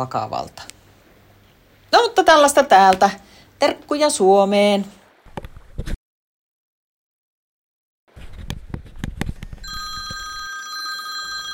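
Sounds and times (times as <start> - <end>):
speech: 0.0 - 0.7, 1.9 - 5.0
telephone ringing: 9.6 - 11.5.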